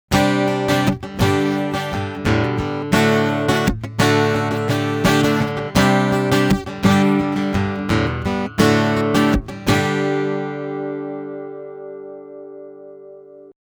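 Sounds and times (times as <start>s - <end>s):
Trace Elliott bass amp: 0.1s - 13.2s.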